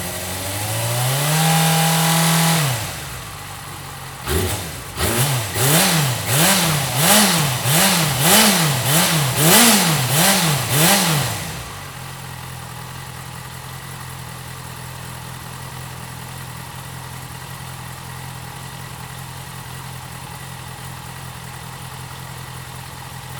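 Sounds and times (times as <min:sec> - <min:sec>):
Yamaha FZ 600 motorcycle engine: 0:00.0 - 0:23.3.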